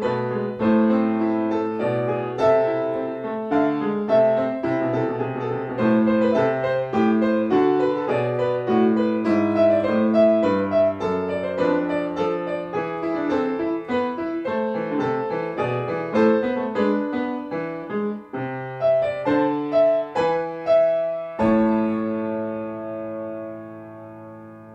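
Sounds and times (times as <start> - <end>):
baroque sinfonia on a Yamaha piano: 0.0 - 24.7.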